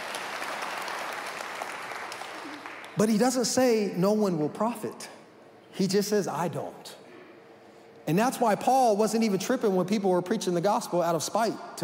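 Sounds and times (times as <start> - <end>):
audience clapping: 0.0 - 3.2
speech: 3.0 - 5.2, 5.8 - 7.0, 8.1 - 11.8.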